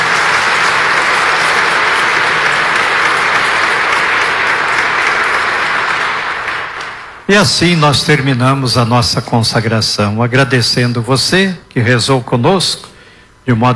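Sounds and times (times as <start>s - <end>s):
applause: 0.0s - 7.3s
speech: 7.3s - 12.9s, 13.5s - 13.7s.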